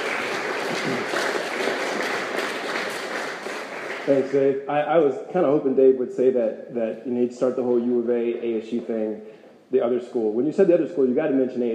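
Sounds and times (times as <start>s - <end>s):
audience round of applause: 0.0s - 4.4s
speech: 0.7s - 1.3s, 4.0s - 11.7s.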